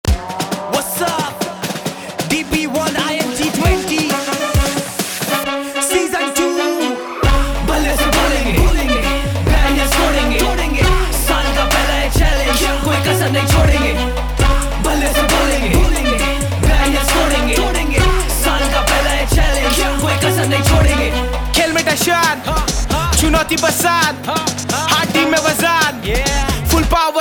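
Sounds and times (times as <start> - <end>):
rap anthem: 0.0 - 27.1.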